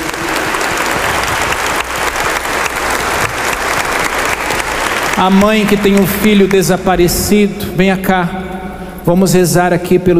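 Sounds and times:
audience applause: 0.0 - 6.7
speech: 5.2 - 8.4, 9.0 - 10.1.

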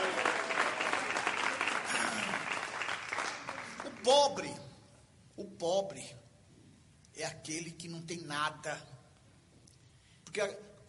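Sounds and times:
audience clapping: 0.0 - 4.5
speech: 4.1 - 4.6, 5.4 - 6.2, 7.2 - 8.9, 10.4 - 10.7.

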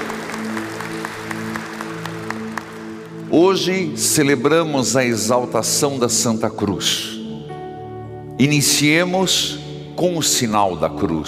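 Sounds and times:
audience applause: 0.0 - 3.3
speech: 3.3 - 7.2, 8.4 - 11.2.

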